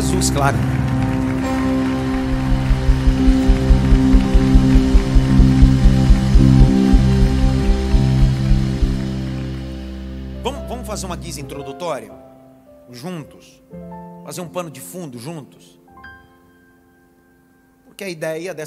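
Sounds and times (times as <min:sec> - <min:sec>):
audience applause: 0:00.0 - 0:09.8
sustained low musical tones: 0:00.0 - 0:12.4
speech: 0:00.2 - 0:00.8, 0:10.9 - 0:12.3, 0:12.9 - 0:15.8, 0:18.0 - 0:18.6.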